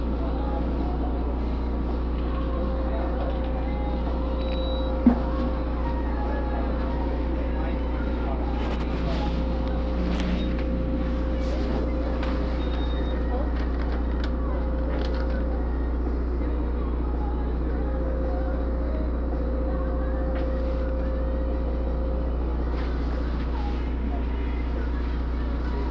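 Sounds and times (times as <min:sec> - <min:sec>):
constant mid-pitched whine: 0:00.0 - 0:25.9
faint radio voices: 0:00.0 - 0:25.9
mobile blood donation bus engine or generator hum: 0:00.0 - 0:25.9
small clicks and clatters: 0:13.5 - 0:15.5.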